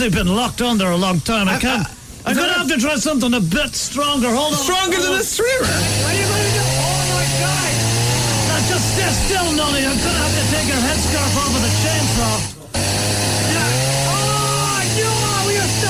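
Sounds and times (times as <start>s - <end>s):
speech: 0.0s - 6.4s, 9.1s - 12.6s
chainsaw engine droning and revving: 5.6s - 15.8s.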